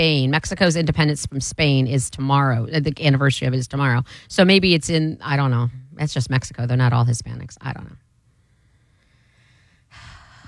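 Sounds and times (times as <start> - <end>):
speech: 0.0 - 8.0
heavy human breath: 8.3 - 10.4.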